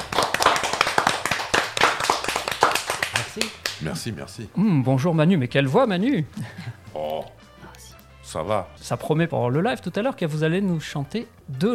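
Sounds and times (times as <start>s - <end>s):
small crowd applause: 0.0s - 3.8s
speech: 3.4s - 7.4s, 8.3s - 11.7s.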